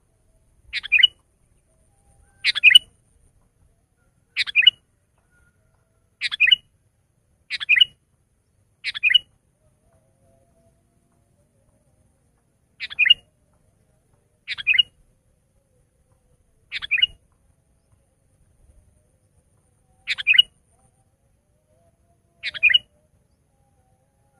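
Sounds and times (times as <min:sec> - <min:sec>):
sooty-headed bulbul song: 0:00.2 - 0:03.0, 0:04.3 - 0:04.8, 0:06.2 - 0:06.7, 0:07.5 - 0:08.0, 0:08.8 - 0:24.3.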